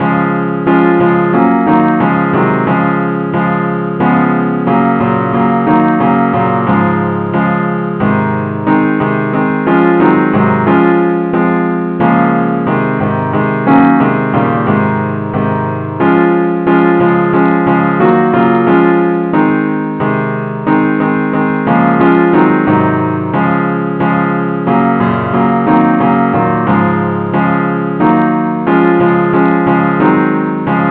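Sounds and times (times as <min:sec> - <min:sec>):
accompaniment in D flat: 0:00.0 - 0:30.8.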